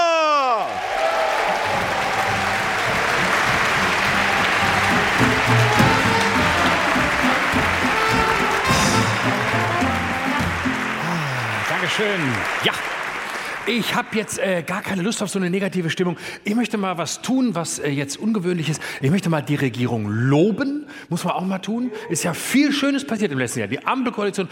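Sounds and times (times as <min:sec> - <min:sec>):
frenetic audience applause: 0:00.0 - 0:14.7
speech: 0:12.0 - 0:12.9, 0:13.6 - 0:24.4.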